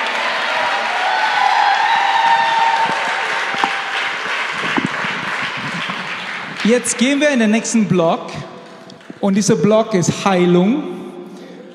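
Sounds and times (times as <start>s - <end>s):
audience applause: 0.0s - 7.5s
speech: 6.6s - 8.5s, 9.2s - 11.0s.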